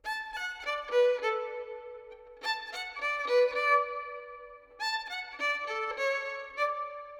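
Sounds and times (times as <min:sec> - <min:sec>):
violin with reverb in D minor: 0:00.0 - 0:07.1.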